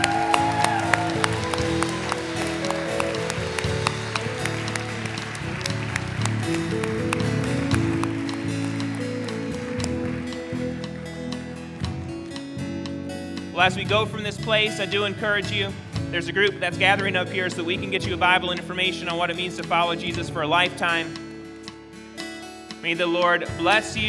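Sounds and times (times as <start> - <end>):
audience applauding: 0.0 - 12.3
speech: 13.6 - 21.2, 22.8 - 24.0.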